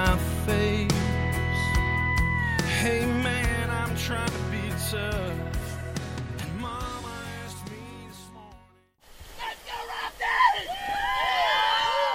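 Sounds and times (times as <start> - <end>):
music: 0.0 - 9.0
rafters whooping and shouting: 1.2 - 2.8, 9.4 - 12.1.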